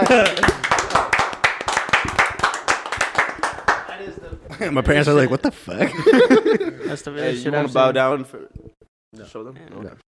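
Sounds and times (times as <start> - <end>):
applause: 0.0 - 4.0
speech: 0.1 - 0.6, 4.6 - 8.6, 9.2 - 10.1
laughter: 1.8 - 3.6, 5.4 - 7.8, 8.6 - 9.2.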